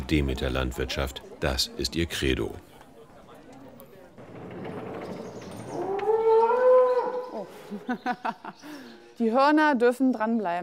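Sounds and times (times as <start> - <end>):
speech: 0.1 - 2.7, 7.7 - 10.6
agitated young cow mooing: 5.7 - 7.5
laughter: 7.5 - 8.9.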